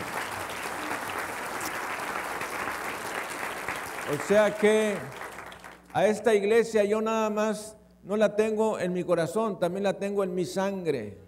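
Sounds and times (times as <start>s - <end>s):
audience clapping: 0.0s - 5.9s
speech: 4.1s - 5.2s, 6.0s - 11.2s.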